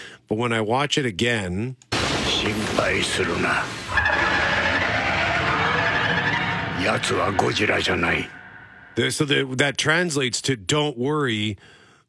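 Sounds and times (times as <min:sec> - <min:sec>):
speech: 0:00.3 - 0:04.2, 0:06.8 - 0:08.4, 0:09.0 - 0:11.8
Rodan giant flying monster screech in a movie trailer: 0:02.0 - 0:09.2.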